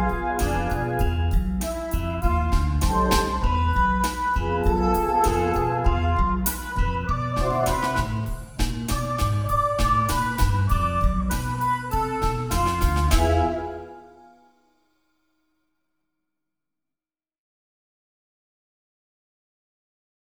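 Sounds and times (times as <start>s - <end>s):
recorder: 0.0s - 14.4s.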